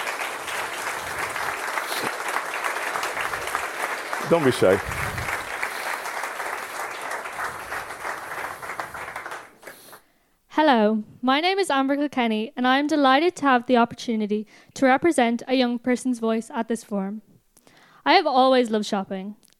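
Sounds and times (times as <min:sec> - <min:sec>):
audience applause: 0:00.0 - 0:10.0
speech: 0:04.3 - 0:05.2, 0:10.8 - 0:17.3, 0:18.0 - 0:19.4.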